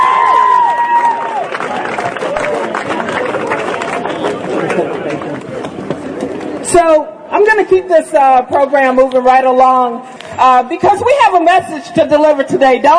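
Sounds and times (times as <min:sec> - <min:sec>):
audience applause: 0:00.0 - 0:05.7
speech: 0:06.8 - 0:12.9.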